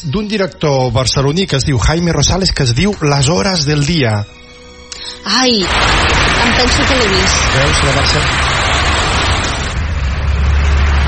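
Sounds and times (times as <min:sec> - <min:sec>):
speech: 0:00.0 - 0:04.4, 0:05.2 - 0:08.6
city street traffic in the 2003 film Las horas del día: 0:05.6 - 0:11.0.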